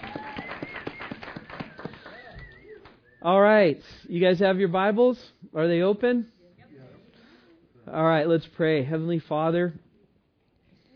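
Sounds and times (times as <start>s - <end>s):
audience clapping: 0.0s - 3.0s
speech: 3.2s - 6.4s, 7.9s - 9.8s.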